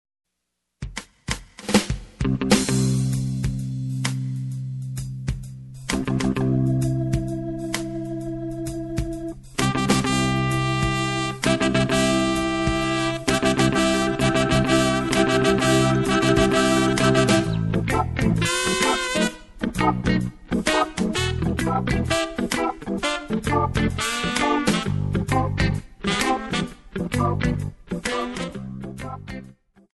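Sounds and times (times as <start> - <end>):
reggae wedding march: 0.9 - 29.6.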